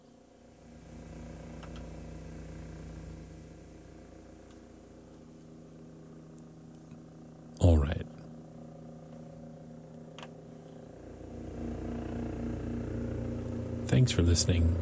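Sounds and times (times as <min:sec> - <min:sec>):
helicopter flying overhead: 0:04.5 - 0:14.8
speech: 0:13.9 - 0:14.8.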